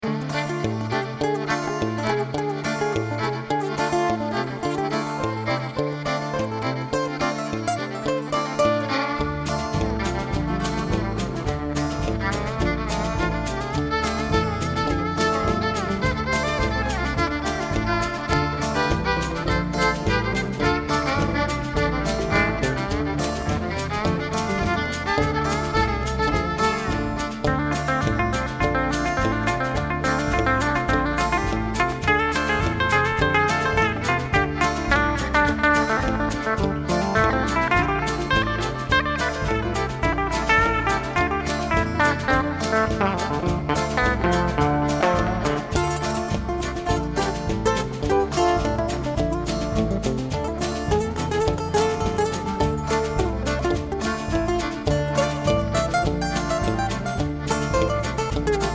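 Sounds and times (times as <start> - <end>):
instrumental jam: 0.0 - 58.7.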